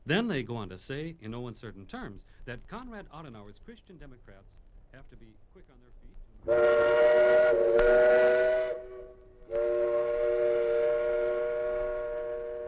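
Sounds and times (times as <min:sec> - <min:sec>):
speech: 0:00.1 - 0:09.2
Rhine river boat steam whistle blowing: 0:06.5 - 0:12.6.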